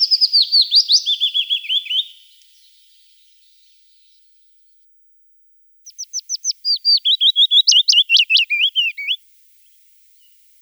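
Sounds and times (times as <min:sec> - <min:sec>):
willow warbler singing: 0:00.0 - 0:02.1, 0:05.9 - 0:09.2.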